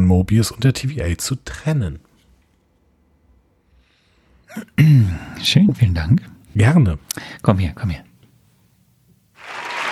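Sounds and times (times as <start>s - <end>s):
speech: 0.1s - 2.1s, 4.5s - 8.1s
applause sound effect: 9.4s - 9.9s.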